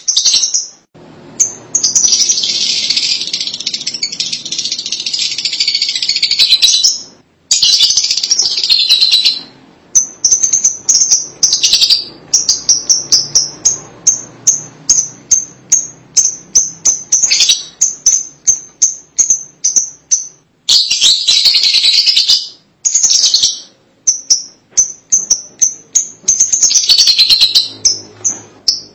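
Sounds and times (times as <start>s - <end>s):
lovebird chattering: 0.0s - 28.9s.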